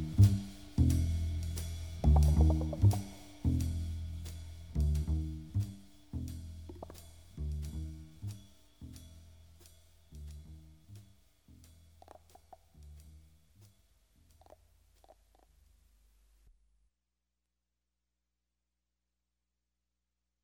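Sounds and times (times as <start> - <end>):
multi bass: 0.0 - 16.0.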